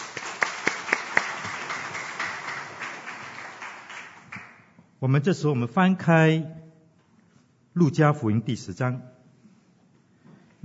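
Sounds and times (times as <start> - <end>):
audience applause: 0.0 - 4.6
speech: 5.0 - 6.6, 7.8 - 9.2.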